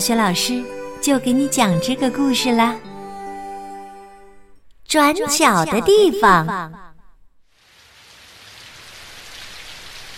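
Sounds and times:
speech: 0.0 - 2.9, 4.9 - 6.9
rain falling: 7.5 - 10.1.

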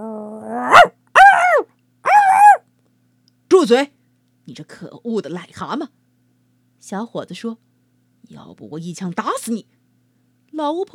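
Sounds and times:
small dog barking fiercely: 0.6 - 2.6
speech: 3.6 - 6.0, 6.8 - 7.7, 8.3 - 9.8, 10.6 - 10.9.

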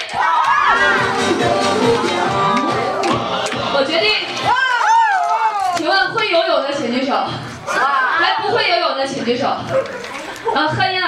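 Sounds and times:
audience applause: 0.0 - 5.8
speech: 6.4 - 11.0.

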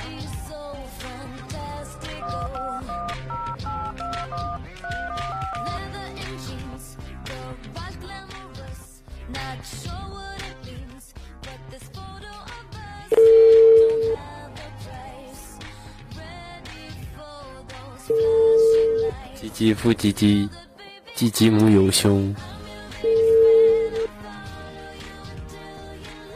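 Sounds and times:
music: 0.0 - 26.3
busy signal tone: 2.2 - 5.8, 13.1 - 14.2, 18.1 - 19.1, 23.1 - 24.1
telephone dialing beeps: 2.2 - 5.8, 13.1 - 14.2, 18.1 - 19.1, 23.1 - 24.1
speech: 19.6 - 20.6, 21.2 - 22.5.

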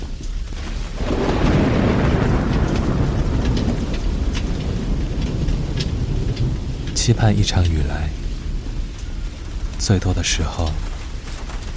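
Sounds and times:
thunder: 0.0 - 11.7
speech: 7.1 - 8.2, 9.8 - 10.9.

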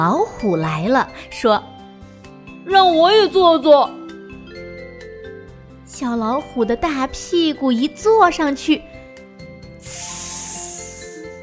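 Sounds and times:
speech: 0.0 - 1.7, 2.6 - 4.0, 5.9 - 9.0
air hissing out of a leaking ball: 9.8 - 11.4.

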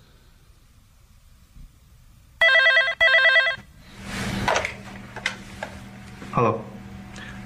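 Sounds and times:
telephone ringing: 2.4 - 3.7
speech: 6.4 - 6.7.

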